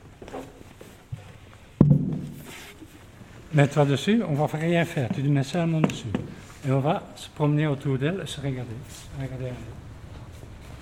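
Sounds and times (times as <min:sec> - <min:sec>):
chair being set down beside: 0:01.8 - 0:02.7
speech: 0:03.6 - 0:09.9.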